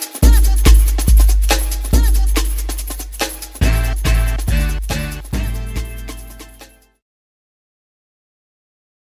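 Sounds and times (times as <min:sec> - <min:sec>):
jungle music: 0:00.0 - 0:07.0.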